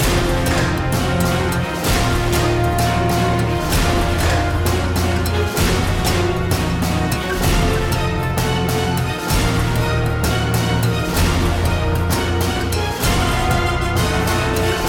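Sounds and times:
battle music loop: 0.0s - 14.8s.

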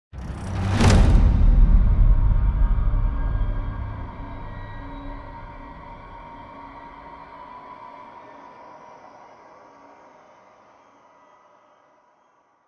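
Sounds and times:
combat music transition: 0.2s - 6.8s.

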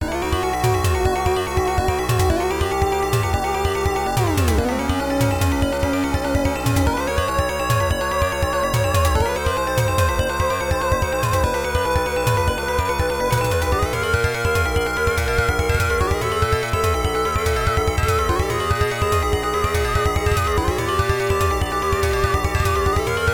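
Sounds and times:
FM synthesis music: 0.0s - 23.3s.

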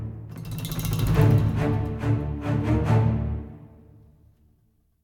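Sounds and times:
action chase music intro at 140 bpm: 0.3s - 3.3s.

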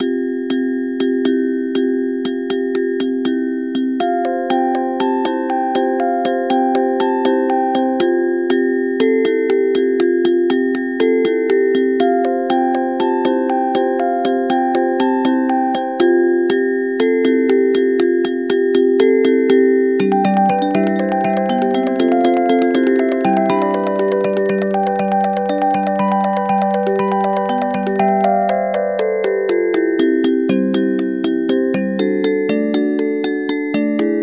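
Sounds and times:
music box: 0.0s - 34.2s.

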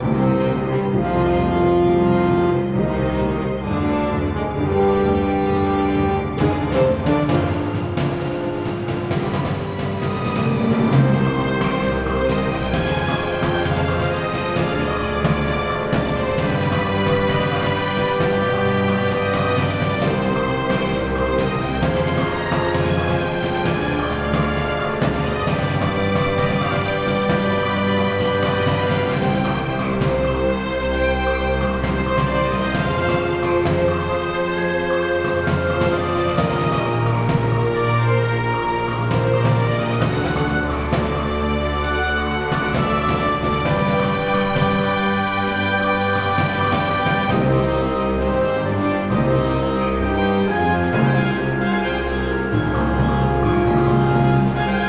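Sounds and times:
music in a cave: 0.0s - 54.8s.

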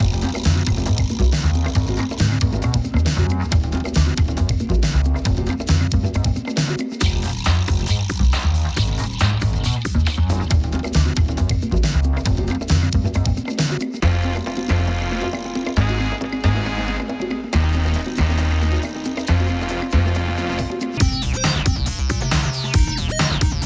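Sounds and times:
hip hop music: 0.0s - 23.6s.

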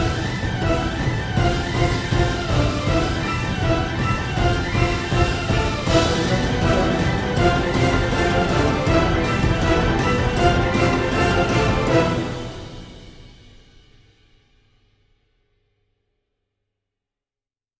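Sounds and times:
orchestral music: 0.0s - 14.1s.

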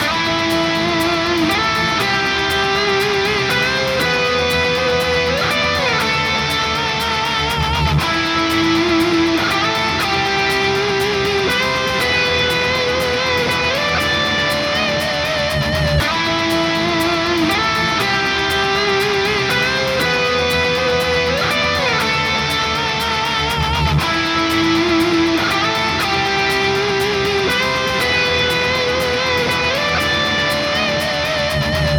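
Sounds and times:
bard playing a full groove loop: 0.0s - 31.9s.

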